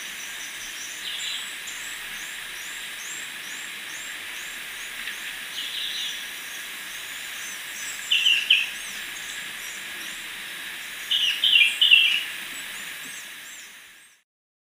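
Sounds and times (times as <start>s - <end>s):
black-and-white becard calling in Ecuador: 8.0s - 9.2s, 11.1s - 12.3s.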